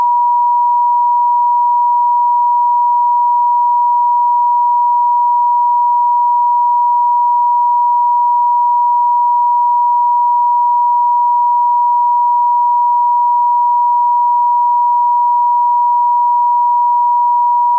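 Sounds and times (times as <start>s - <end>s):
963 Hz solfeggio frequency tone: 0.0s - 17.7s.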